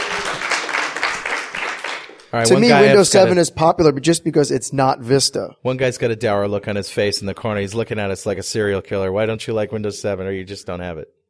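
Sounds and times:
audience clapping: 0.0s - 3.0s
speech: 2.3s - 11.2s.

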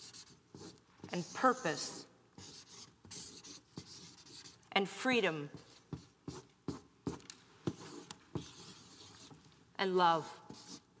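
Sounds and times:
pen on paper strokes drawing a picture: 0.0s - 4.6s, 5.5s - 9.4s, 10.4s - 10.9s
speech: 1.2s - 2.1s, 4.8s - 5.7s, 9.8s - 10.4s.

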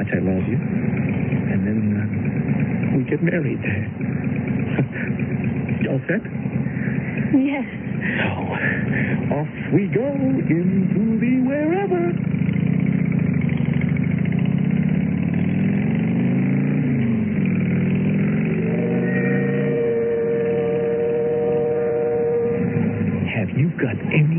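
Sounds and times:
motorcycle engine riding and pulling up: 0.0s - 24.3s
speech: 3.2s - 5.0s, 5.9s - 6.6s, 7.3s - 12.6s.

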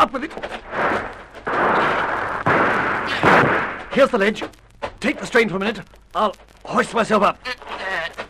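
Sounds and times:
speech: 0.0s - 0.6s, 4.0s - 7.8s
gunfire from the trees in a radio drama: 0.6s - 4.5s.

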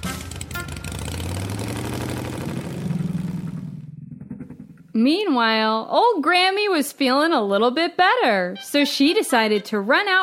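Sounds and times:
small scooter engine revving and driving off: 0.0s - 4.8s
speech: 5.0s - 10.2s.

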